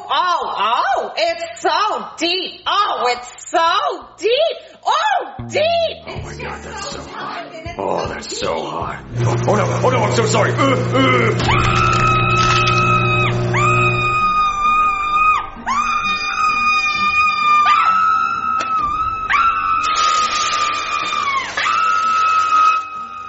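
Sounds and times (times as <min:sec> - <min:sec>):
speech: 0:00.2 - 0:12.2
screaming: 0:11.3 - 0:23.2.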